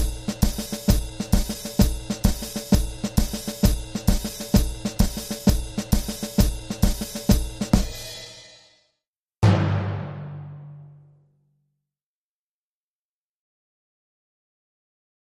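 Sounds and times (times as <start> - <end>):
various drums and percussion: 0.0 - 8.7, 9.4 - 11.1.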